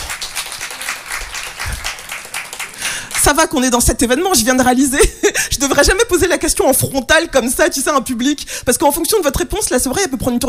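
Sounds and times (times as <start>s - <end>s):
crowd applause at a live show in France: 0.0s - 3.4s
speech: 3.2s - 10.4s.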